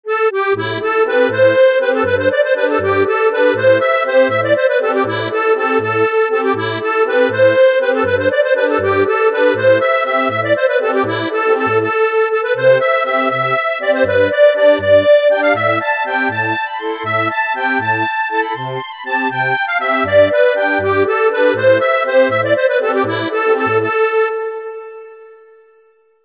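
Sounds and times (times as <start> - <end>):
harmonica: 0.1 - 26.1.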